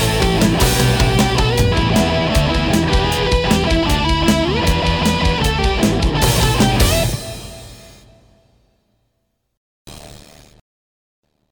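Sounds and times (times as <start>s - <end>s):
hard rock music: 0.0s - 8.2s.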